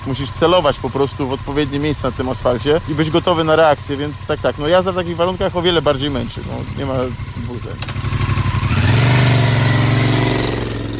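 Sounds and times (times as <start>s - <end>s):
motorcycle engine idling and revving: 0.0s - 10.9s
speech: 0.1s - 8.2s.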